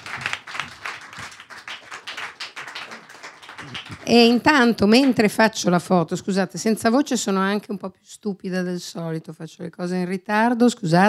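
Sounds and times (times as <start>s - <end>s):
audience applause: 0.0s - 5.2s
speech: 3.6s - 11.0s.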